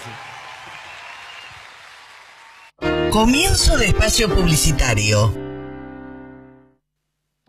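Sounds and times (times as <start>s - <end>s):
audience applause: 0.0s - 2.8s
speech: 3.1s - 5.4s.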